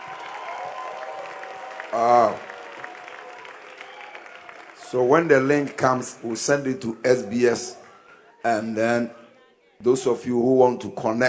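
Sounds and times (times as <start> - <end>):
audience applause standing ovation: 0.0 - 8.4
speech: 1.9 - 2.5, 4.9 - 7.8, 8.4 - 9.2, 9.8 - 11.2.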